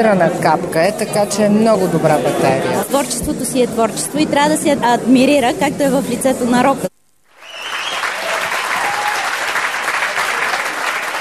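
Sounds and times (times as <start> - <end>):
speech: 0.0 - 7.0
applause: 7.3 - 11.1.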